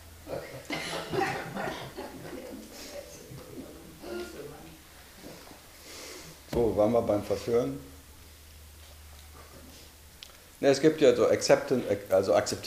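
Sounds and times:
coughing: 0.3 - 2.4
laughter: 0.3 - 3.0
speech: 6.6 - 7.9, 10.6 - 12.6.

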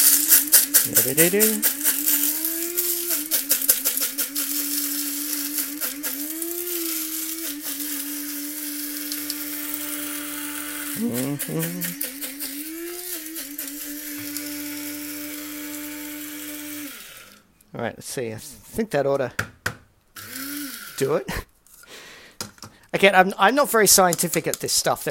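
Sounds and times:
coffee grinder grinding coffee beans: 0.0 - 17.5, 20.2 - 21.3
speech: 0.8 - 1.8, 11.1 - 12.1, 17.8 - 19.5, 21.0 - 21.4, 23.0 - 25.0.

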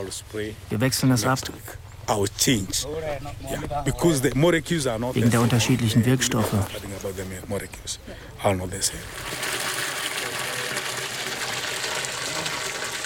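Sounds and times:
speech: 0.0 - 9.5
water pumped into a large blue rain barrel: 9.0 - 13.0.

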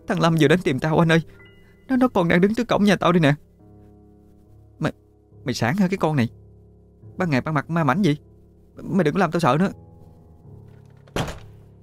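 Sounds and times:
speech: 0.1 - 3.5, 4.8 - 6.4, 7.1 - 9.8
loud banging on a door: 11.1 - 11.6.

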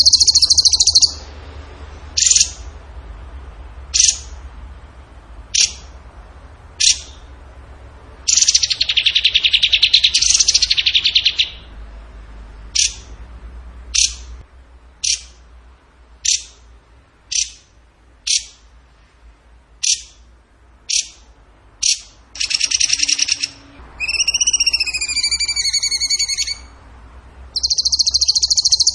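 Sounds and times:
bird chips and buzzy descending trill: 0.0 - 1.3, 2.2 - 2.7, 3.9 - 4.4, 5.5 - 5.9, 6.8 - 7.3, 8.3 - 11.7, 12.7 - 13.2, 13.9 - 14.3, 15.0 - 15.4, 16.2 - 16.6, 17.3 - 17.7, 18.3 - 18.6, 19.8 - 20.2, 20.9 - 21.2, 21.8 - 26.7, 27.6 - 28.9
low hum: 0.0 - 28.9.

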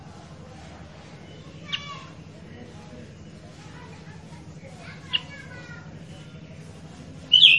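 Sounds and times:
Sooty-headed bulbul calls: 1.4 - 2.1, 5.0 - 5.5, 7.3 - 7.5.

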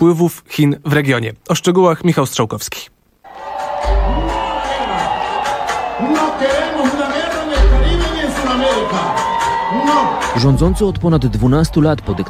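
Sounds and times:
speech: 0.0 - 3.5, 6.0 - 7.1, 9.7 - 12.2
large crowd of supporters cheering and shouting at a rally: 3.3 - 12.2.

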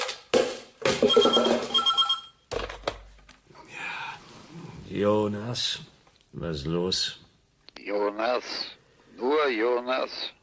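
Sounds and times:
speech: 1.0 - 1.3, 4.9 - 7.2, 7.9 - 10.4
shrill metallic telephone bell ringing: 1.0 - 2.4.

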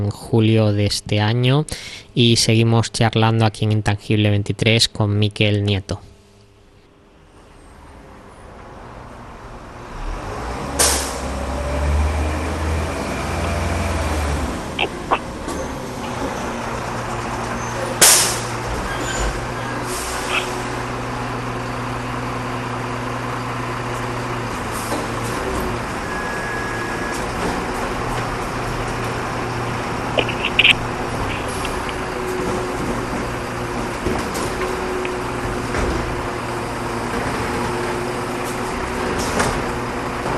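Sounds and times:
speech: 0.0 - 6.1
garbage truck engine rumble: 7.4 - 40.3
garbage truck air-brake hiss: 10.8 - 11.3, 19.8 - 20.7.

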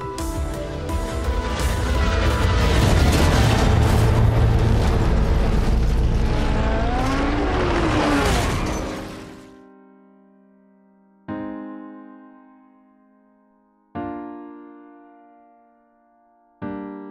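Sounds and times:
rushing fire of burning racing car: 0.7 - 9.4
booming impact of red racing car crash: 1.4 - 9.0
red racing car engine roar: 1.4 - 9.4.

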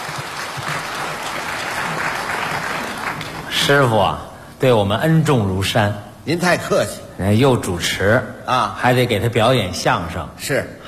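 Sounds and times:
audience applause for a crosstalk master at a comedy performance: 0.0 - 3.9
speech: 3.7 - 10.8.

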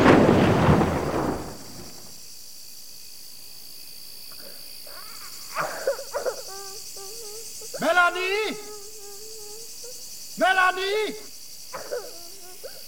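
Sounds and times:
gunshot: 0.0 - 2.1
high insect drone: 0.0 - 12.8.

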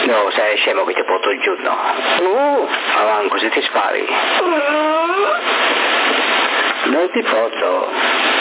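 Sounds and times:
speech: 0.1 - 8.2
dog whining: 4.3 - 5.5.

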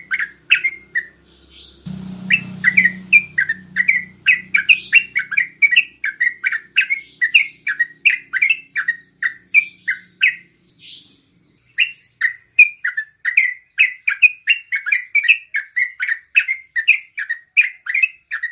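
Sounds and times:
yellow-vented bulbul singing: 0.0 - 18.4.

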